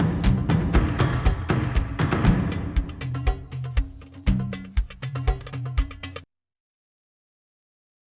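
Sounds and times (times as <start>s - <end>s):
combat music: 0.0s - 6.2s.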